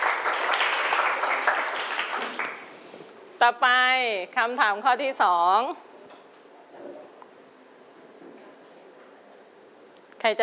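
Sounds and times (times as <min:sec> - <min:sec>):
group applauding: 0:00.0 - 0:02.8
speech: 0:03.4 - 0:05.9, 0:10.2 - 0:10.4.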